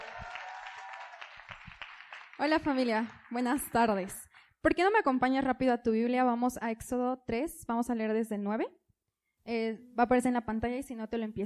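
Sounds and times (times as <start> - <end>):
audience applause: 0.0 - 4.2
speech: 2.4 - 8.8, 9.5 - 11.4.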